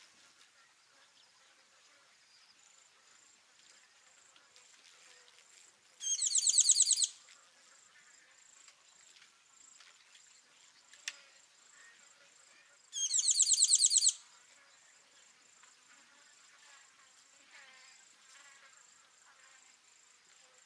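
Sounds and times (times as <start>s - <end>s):
tinkling cisticola calling in Kawelwa Zambia: 6.0s - 7.2s, 13.0s - 14.2s.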